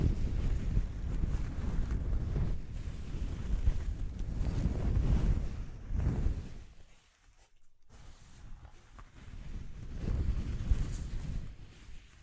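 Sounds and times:
blustery low rumble of rubbing against the microphone: 0:00.0 - 0:12.2.

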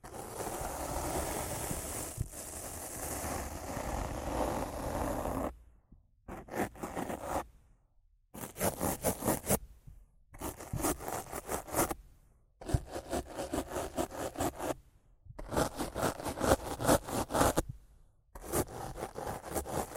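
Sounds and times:
rough scratching and brushing on a microphone: 0:00.0 - 0:05.6, 0:06.3 - 0:07.5, 0:08.4 - 0:09.6, 0:10.4 - 0:12.0, 0:12.6 - 0:14.8, 0:15.4 - 0:17.7, 0:18.4 - 0:19.9.

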